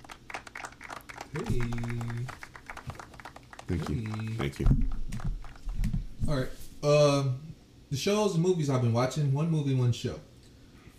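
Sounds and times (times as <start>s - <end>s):
round of applause: 0.0s - 6.0s
speech: 1.3s - 2.1s, 3.7s - 5.1s, 6.3s - 10.3s.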